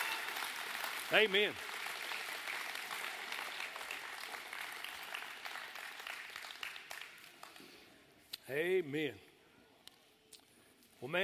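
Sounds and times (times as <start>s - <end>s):
audience applause: 0.0s - 7.6s
speech: 1.1s - 1.7s, 8.5s - 9.3s, 11.0s - 11.2s.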